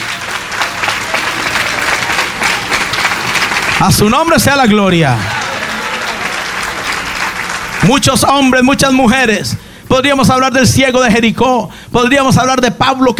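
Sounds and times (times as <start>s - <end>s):
audience applauding: 0.0s - 9.0s
speech: 3.8s - 5.4s, 7.8s - 13.1s.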